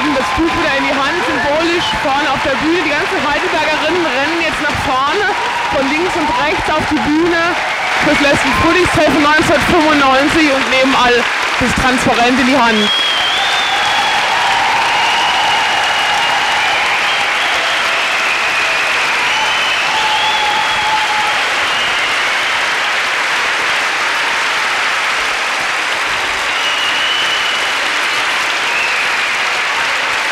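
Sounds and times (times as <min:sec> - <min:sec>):
audience applause: 0:00.0 - 0:30.3
faint whistles and cheers: 0:00.0 - 0:30.3
speech: 0:00.2 - 0:13.0.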